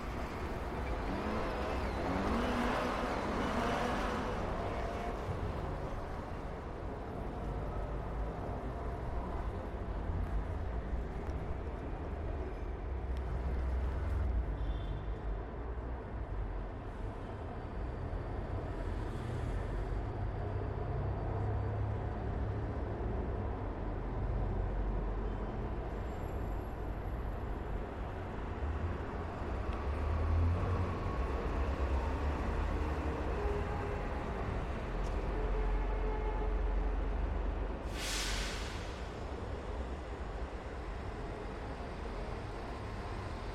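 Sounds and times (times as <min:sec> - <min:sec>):
street traffic roar of cars and heavier vehicles passing: 0:00.0 - 0:43.5
brief sharp hiss or burst: 0:37.8 - 0:39.2.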